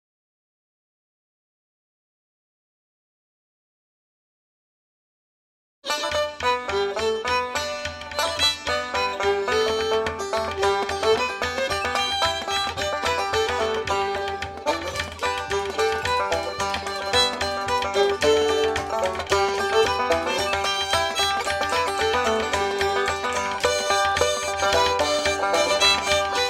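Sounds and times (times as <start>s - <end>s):
banjo: 5.9s - 26.4s.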